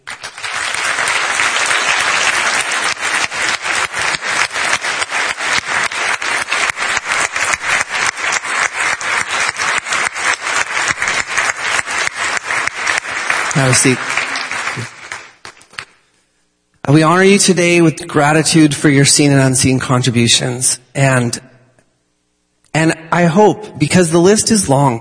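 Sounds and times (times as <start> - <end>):
large audience applauding: 0.0 - 16.0
rhythmic clapping in unison: 0.0 - 16.1
speech: 13.6 - 14.2, 16.9 - 21.5, 23.2 - 24.9.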